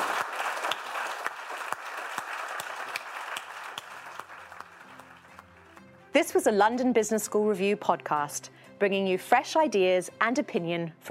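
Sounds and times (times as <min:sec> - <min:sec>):
audience applause at London Business School: 0:00.0 - 0:05.6
speech: 0:06.2 - 0:11.0.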